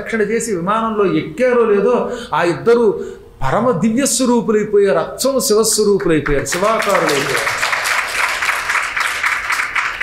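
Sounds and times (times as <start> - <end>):
speech: 0.0 - 7.7
audience clapping during a devotional discourse: 6.2 - 10.0.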